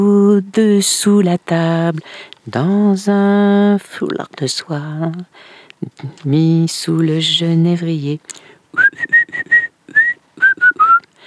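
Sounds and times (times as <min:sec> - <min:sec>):
speech: 0:00.0 - 0:10.0
person whistling a bird-like song: 0:08.8 - 0:11.1.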